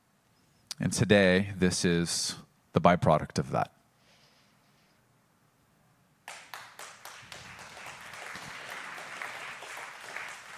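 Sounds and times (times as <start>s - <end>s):
speech: 0.8s - 3.8s
audience applause: 6.3s - 10.5s.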